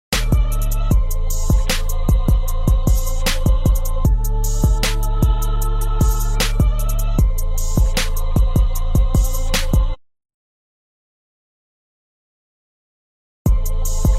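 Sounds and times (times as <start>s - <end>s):
music beat: 0.1s - 10.0s, 13.5s - 14.1s.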